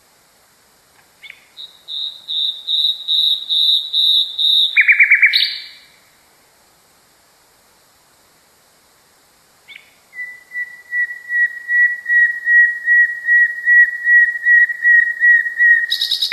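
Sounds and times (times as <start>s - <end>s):
nightingale song with whistles and buzzy rattle: 1.2s - 5.8s, 9.7s - 16.3s.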